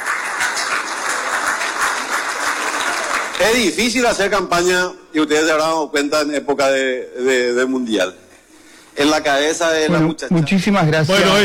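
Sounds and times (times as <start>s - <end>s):
audience applause: 0.0s - 3.7s
speech: 3.4s - 8.2s, 9.0s - 11.4s.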